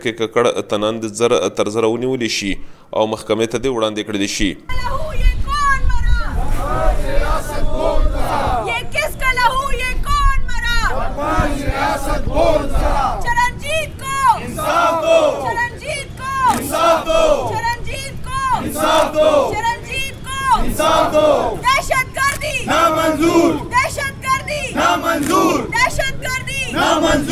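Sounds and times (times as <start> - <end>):
speech: 0.0 - 5.4, 18.6 - 19.8, 20.5 - 27.3
crowd hubbub at protest march: 4.7 - 27.3
Sikh community members, activists and party members chanting slogans at protest march: 6.2 - 9.2, 10.7 - 27.3.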